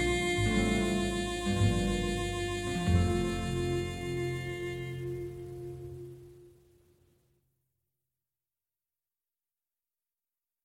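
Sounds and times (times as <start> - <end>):
harmonica: 0.0 - 6.4
guitar: 0.0 - 6.8.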